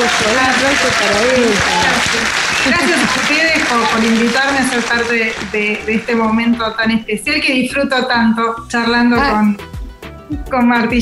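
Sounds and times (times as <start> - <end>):
crowd applause: 0.0 - 6.6
speech: 0.2 - 9.7, 10.3 - 11.0.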